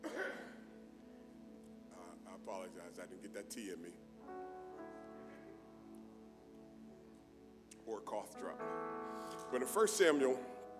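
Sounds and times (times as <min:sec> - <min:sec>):
throat clearing: 0:00.0 - 0:00.6
speech: 0:02.4 - 0:04.5, 0:07.9 - 0:10.5.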